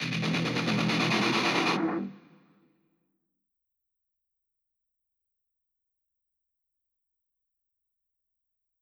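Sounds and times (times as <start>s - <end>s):
drum break loop: 0.0s - 2.0s.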